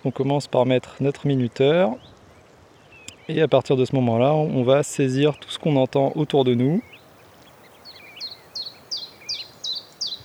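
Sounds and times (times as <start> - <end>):
speech: 0.0 - 2.2, 3.3 - 7.0
common chiffchaff song: 6.8 - 10.2.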